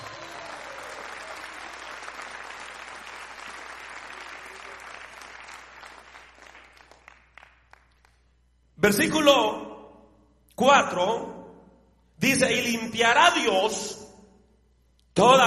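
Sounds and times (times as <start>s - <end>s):
audience applause: 0.0s - 8.2s
speech: 8.8s - 9.6s, 10.6s - 11.3s, 12.2s - 14.0s, 15.2s - 15.4s.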